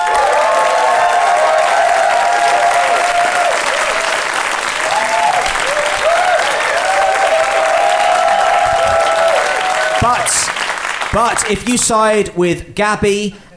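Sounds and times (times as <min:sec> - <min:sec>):
cheers and whoops: 0:00.0 - 0:10.3
large live audience applauding: 0:00.0 - 0:11.9
speech: 0:11.2 - 0:13.5.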